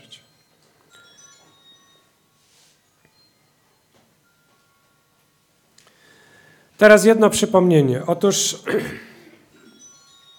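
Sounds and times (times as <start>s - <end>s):
mobile phone ringing: 0.0s - 6.4s, 9.5s - 10.3s
speech: 6.8s - 9.1s.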